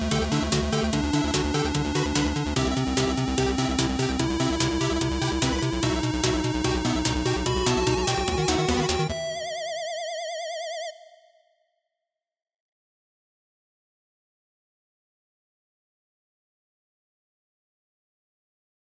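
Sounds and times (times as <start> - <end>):
8-bit music: 0.0 - 11.1.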